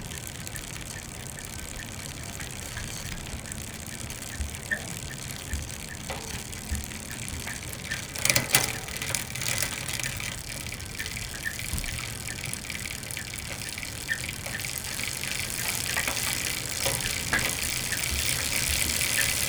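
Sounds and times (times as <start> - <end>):
gear shifting: 0.6 - 19.4.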